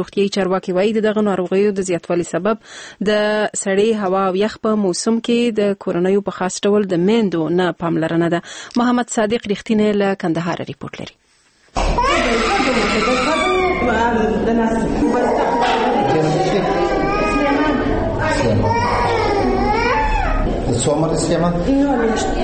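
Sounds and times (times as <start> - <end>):
speech: 0.0 - 13.2, 20.7 - 22.4
infants crying in the children's ward of Mirwais Hospital in Kandahar: 11.8 - 21.0.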